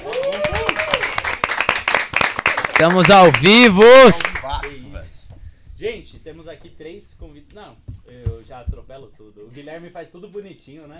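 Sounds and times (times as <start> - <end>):
audience applause: 0.0 - 4.8
speech: 2.8 - 4.8, 5.8 - 10.9.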